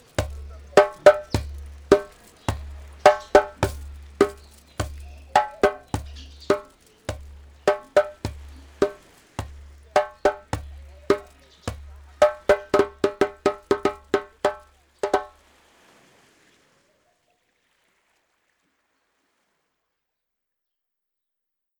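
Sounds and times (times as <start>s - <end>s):
rhythmic music for children: 0.0s - 15.3s.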